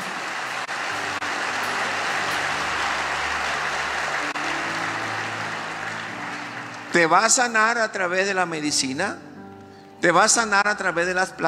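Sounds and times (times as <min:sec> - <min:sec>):
audience applause: 0:00.0 - 0:07.7
speech: 0:07.0 - 0:09.3, 0:10.0 - 0:11.4.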